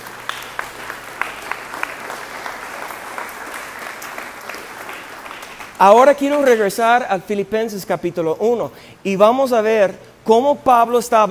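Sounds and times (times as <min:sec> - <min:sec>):
audience applause: 0:00.0 - 0:06.6
speech: 0:05.8 - 0:11.2.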